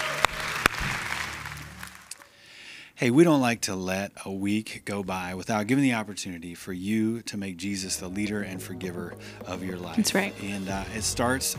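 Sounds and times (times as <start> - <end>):
sharp loud claps: 0.0 - 2.3
applause at a church service: 0.0 - 2.4
speech: 3.0 - 11.5.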